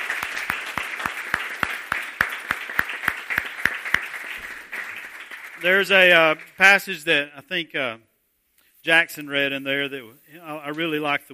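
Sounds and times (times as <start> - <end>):
audience applause: 0.0 - 6.5
speech: 5.6 - 8.1, 8.8 - 11.3.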